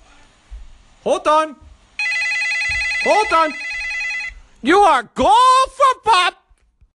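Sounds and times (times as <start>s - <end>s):
speech: 1.0s - 1.6s, 3.0s - 3.6s, 4.6s - 6.4s
telephone ringing: 2.0s - 4.4s.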